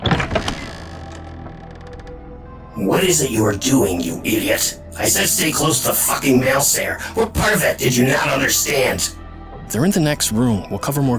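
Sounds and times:
door creaking open: 0:00.0 - 0:02.5
speech: 0:02.8 - 0:11.1.

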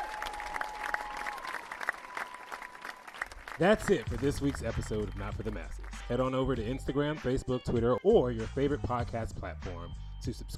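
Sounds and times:
crowd applause: 0:00.0 - 0:06.1
speech: 0:03.6 - 0:10.5.

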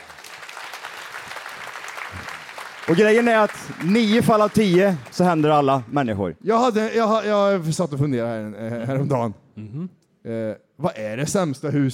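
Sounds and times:
audience applause: 0:00.0 - 0:05.9
speech: 0:02.9 - 0:11.9.

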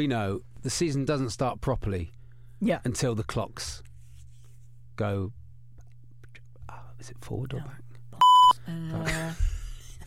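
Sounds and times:
speech: 0:00.0 - 0:03.9, 0:05.0 - 0:05.4, 0:06.7 - 0:07.9, 0:08.7 - 0:09.5
censor bleep tone: 0:08.2 - 0:08.6.

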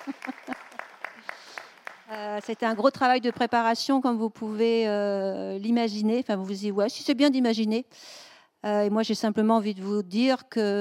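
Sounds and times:
audience applause: 0:00.0 - 0:02.5
speech: 0:02.1 - 0:10.7.

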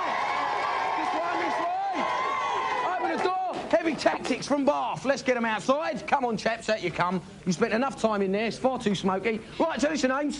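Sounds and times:
people shouting and whooping: 0:00.0 - 0:03.7
crowd applauding: 0:00.0 - 0:04.7
speech: 0:03.8 - 0:10.3.

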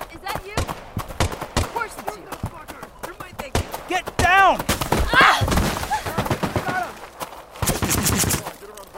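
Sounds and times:
gunfire from guards shooting: 0:00.6 - 0:02.1, 0:03.5 - 0:08.6.

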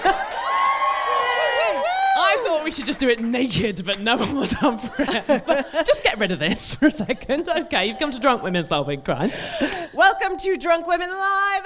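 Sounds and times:
laughter: 0:00.0 - 0:00.4, 0:04.1 - 0:07.6
audience cheering: 0:00.0 - 0:03.3
audience applause: 0:00.0 - 0:04.2
speech: 0:02.7 - 0:11.6.

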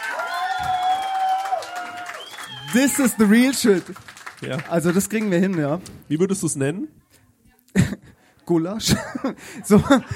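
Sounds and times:
crowd cheering and shouting: 0:00.0 - 0:03.8
crowd clapping: 0:00.0 - 0:05.9
speech: 0:02.7 - 0:07.0, 0:08.5 - 0:10.1
laughter: 0:08.8 - 0:10.1.

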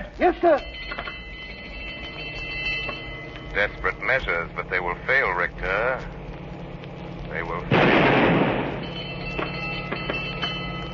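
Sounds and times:
speech: 0:00.0 - 0:00.7, 0:03.6 - 0:06.2, 0:07.3 - 0:08.4
low mechanical hum: 0:00.0 - 0:10.9
blank warning gunshot: 0:07.7 - 0:08.8.

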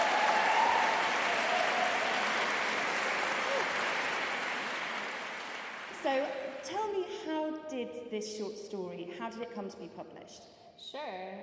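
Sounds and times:
audience applause: 0:00.0 - 0:06.6
speech: 0:06.0 - 0:11.4.

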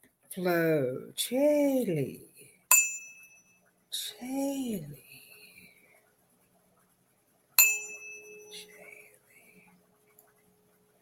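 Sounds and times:
speech: 0:00.3 - 0:02.3, 0:04.0 - 0:05.0
single bright bell ding: 0:02.7 - 0:03.6, 0:07.6 - 0:08.7.

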